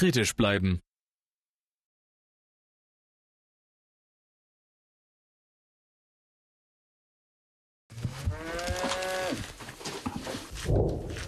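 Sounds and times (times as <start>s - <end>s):
cow mooing: 8.0s - 9.5s
rustling: 8.0s - 11.2s.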